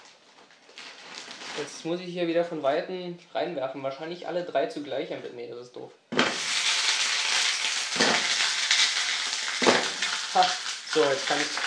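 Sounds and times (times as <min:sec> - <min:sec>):
speech: 0:01.6 - 0:06.1, 0:10.4 - 0:11.6
potato pancakes frying in a pan: 0:06.2 - 0:11.6.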